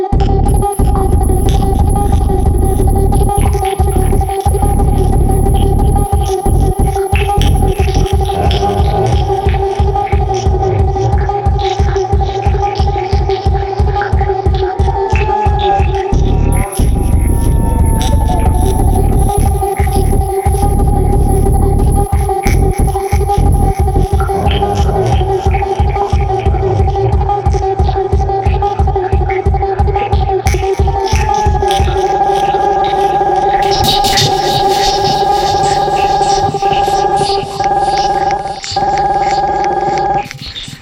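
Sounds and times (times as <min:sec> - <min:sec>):
hi-tech Goa trance rave music: 0:00.1 - 0:40.7.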